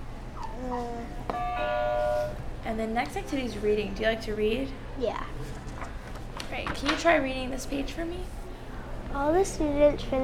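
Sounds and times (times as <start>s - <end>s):
buzzer being pressed: 1.4s - 2.4s
speech: 2.7s - 5.8s, 6.6s - 8.4s, 9.1s - 10.2s.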